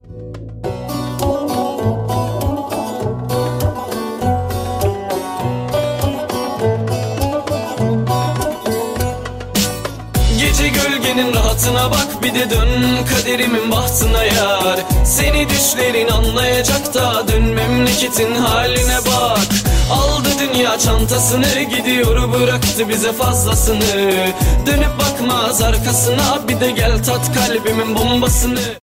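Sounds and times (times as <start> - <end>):
Turkish hip hop music: 0.7 - 28.8.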